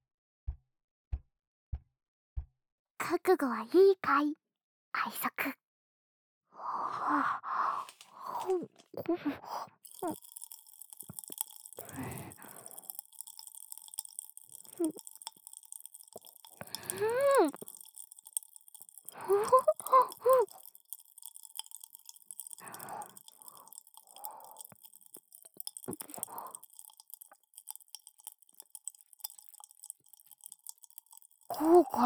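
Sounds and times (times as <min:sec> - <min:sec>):
speech: 0:03.1 - 0:04.4, 0:05.0 - 0:05.6, 0:07.0 - 0:07.7, 0:08.4 - 0:10.4, 0:14.8 - 0:15.0, 0:16.9 - 0:17.7, 0:19.2 - 0:20.6, 0:31.6 - 0:32.0
large mouthful of sweets chewed and crunched: 0:09.8 - 0:32.0.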